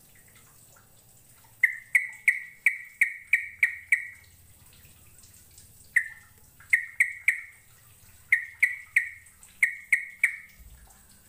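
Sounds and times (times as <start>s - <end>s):
bird chirps: 1.6s - 4.2s, 6.0s - 7.6s, 8.2s - 10.6s.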